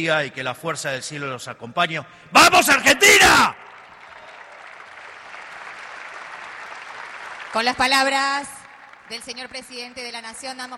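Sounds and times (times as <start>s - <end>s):
speech: 0.0s - 3.7s, 7.6s - 10.7s
audience applause: 2.6s - 9.2s.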